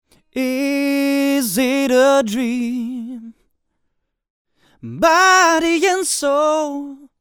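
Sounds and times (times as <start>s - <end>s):
dry vocals: 0.4s - 3.4s, 4.7s - 7.1s.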